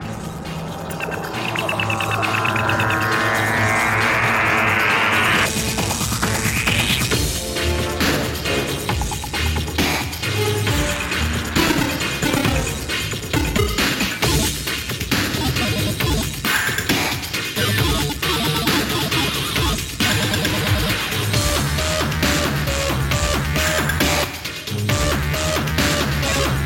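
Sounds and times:
epic dubstep music: 0.0 - 26.6.

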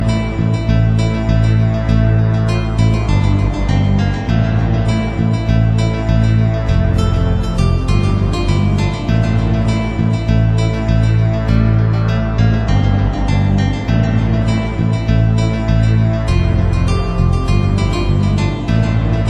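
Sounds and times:
ambient trance music: 0.0 - 19.2.

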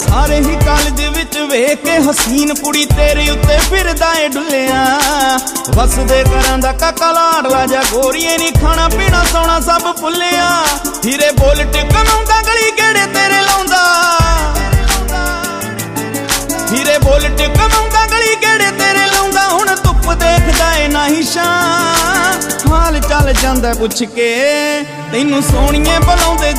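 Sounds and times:
Punjabi music: 0.0 - 26.5.

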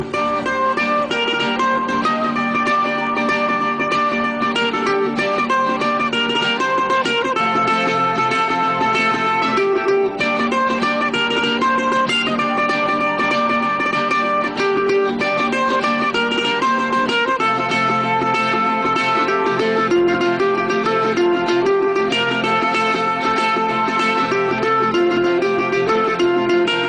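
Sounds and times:
guitar: 0.0 - 26.8.

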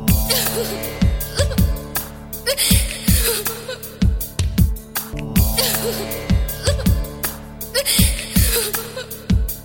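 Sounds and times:
girl crying: 0.3 - 1.9, 2.5 - 4.2, 5.4 - 7.2, 7.7 - 9.4.

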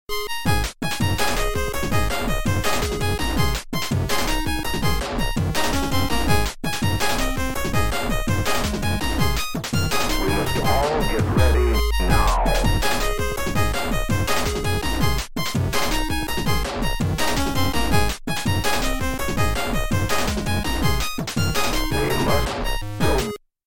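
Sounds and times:
8-bit music: 0.1 - 23.4.

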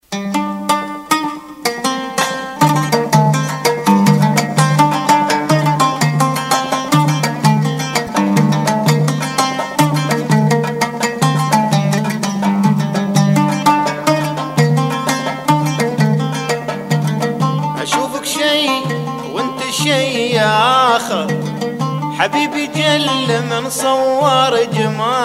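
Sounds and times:
Balochi violin playing: 0.3 - 25.2.

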